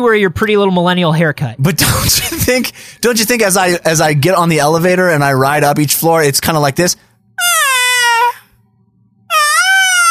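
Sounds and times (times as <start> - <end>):
speech: 0.0 - 7.6
voice imitating a screaming mewling child: 7.4 - 8.4, 9.3 - 10.0.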